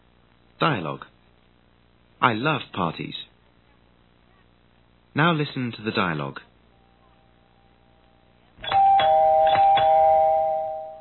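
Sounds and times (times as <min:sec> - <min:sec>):
speech: 0:00.6 - 0:01.1, 0:02.2 - 0:03.3, 0:05.2 - 0:06.5
doorbell ringing with a sustained two-tone chime: 0:08.6 - 0:11.0.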